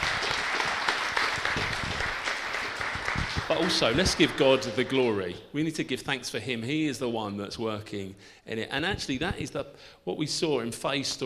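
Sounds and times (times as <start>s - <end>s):
audience applause: 0.0s - 4.9s
speech: 3.6s - 11.2s.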